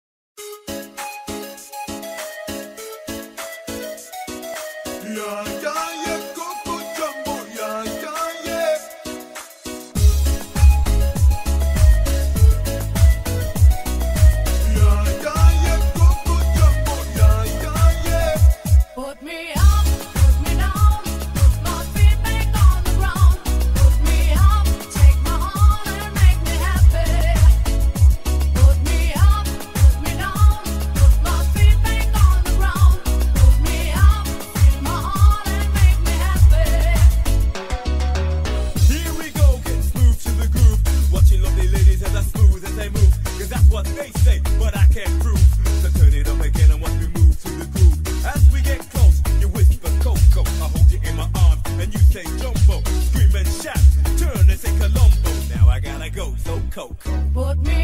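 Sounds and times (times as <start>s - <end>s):
boosted bass: 10.0s - 18.8s, 19.6s - 57.8s.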